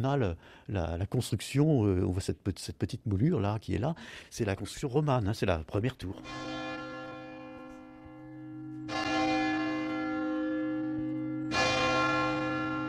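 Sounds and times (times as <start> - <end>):
speech: 0.0 - 6.6
large cathedral church bell tolling: 6.0 - 12.8.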